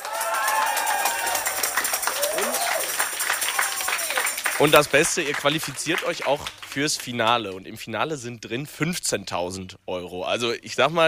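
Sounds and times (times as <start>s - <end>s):
crowd cheering and clapping: 0.0s - 7.1s
speech: 4.6s - 11.0s.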